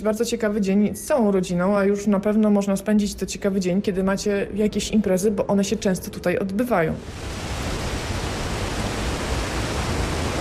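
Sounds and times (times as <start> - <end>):
speech: 0.0 - 7.7
wind blowing from Dolina Lipca: 7.0 - 10.3.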